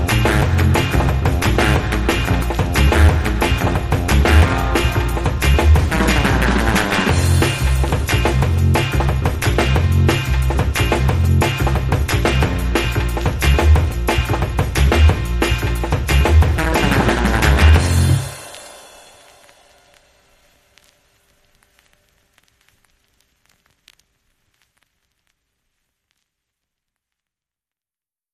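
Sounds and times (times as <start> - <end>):
rockabilly skank music: 0.0 - 19.5.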